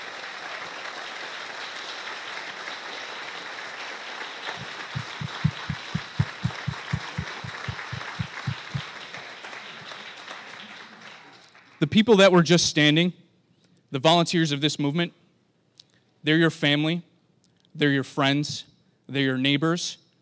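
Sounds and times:
audience applause for volunteers: 0.0 - 11.8
speech: 11.8 - 13.2, 13.9 - 15.2, 16.2 - 17.1, 17.8 - 20.0.

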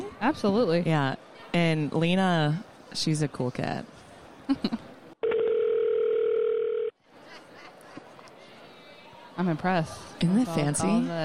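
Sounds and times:
speech: 0.2 - 4.8, 9.4 - 11.2
telephone call ringing out: 5.2 - 7.0.

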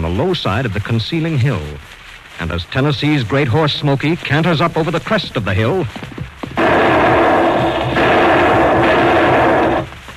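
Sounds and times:
speech: 0.0 - 6.1
gunshots at close range: 6.6 - 9.9.

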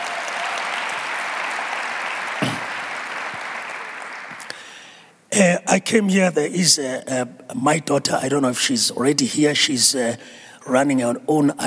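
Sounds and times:
audience applause: 0.0 - 4.4
speech: 5.4 - 11.6.

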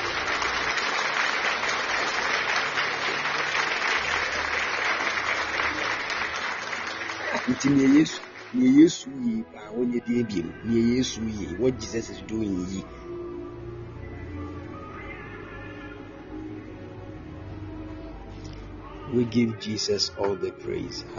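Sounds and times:
audience clapping: 0.0 - 9.0
speech: 7.5 - 13.0, 19.1 - 21.1.

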